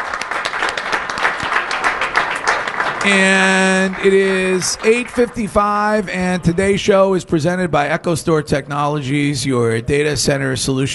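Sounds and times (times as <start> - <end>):
round of applause: 0.0 - 5.6
speech: 3.0 - 10.9.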